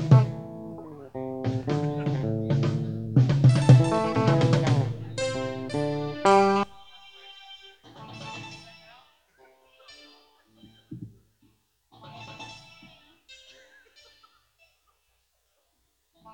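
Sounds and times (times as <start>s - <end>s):
band warming up for a soundcheck: 0.0s - 6.8s.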